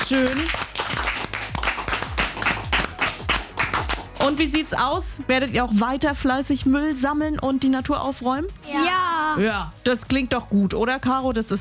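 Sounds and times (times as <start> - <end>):
audience clapping: 0.0 - 4.7
speech: 0.1 - 1.0, 4.3 - 11.5.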